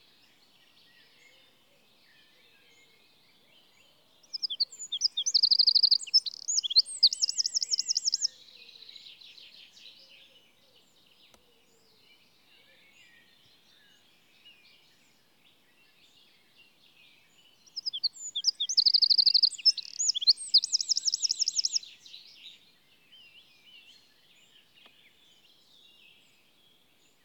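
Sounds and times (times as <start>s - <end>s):
Eurasian wren singing: 4.3s - 8.4s, 17.6s - 22.5s.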